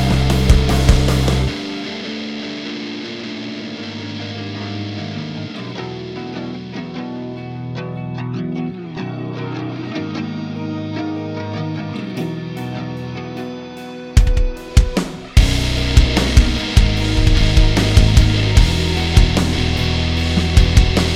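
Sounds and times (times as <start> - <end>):
drum kit loop: 0.0 - 4.9, 14.2 - 21.1.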